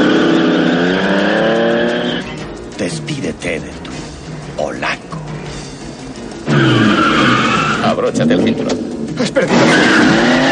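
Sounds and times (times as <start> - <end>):
car tires skidding at full speed: 0.0 - 2.4, 6.4 - 10.4
car engine roaring at full speed: 0.0 - 3.0, 5.1 - 10.4
speech: 8.0 - 9.6.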